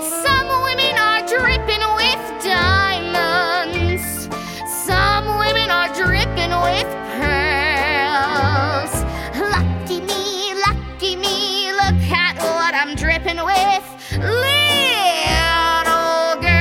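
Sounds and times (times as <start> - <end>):
little girls singing for an audition: 0.2 - 16.5.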